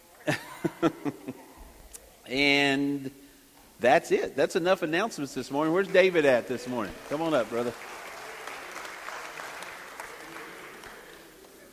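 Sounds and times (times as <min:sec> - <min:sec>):
speech: 0:00.2 - 0:01.4, 0:02.3 - 0:03.2, 0:03.8 - 0:07.9
laughter: 0:00.2 - 0:01.7
audience clapping: 0:05.4 - 0:11.7.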